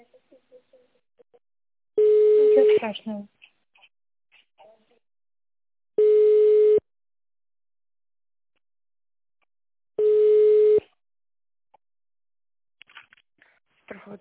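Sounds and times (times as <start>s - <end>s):
telephone ringback tone while a call is transferred to a specialist: 2.0s - 2.7s, 6.0s - 6.8s, 10.0s - 10.8s
speech: 2.8s - 3.4s.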